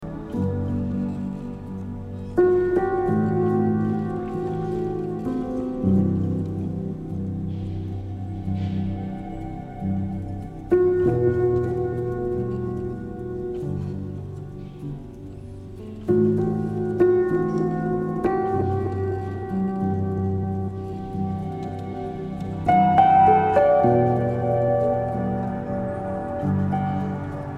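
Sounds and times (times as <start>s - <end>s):
piano piece: 0.0s - 27.5s.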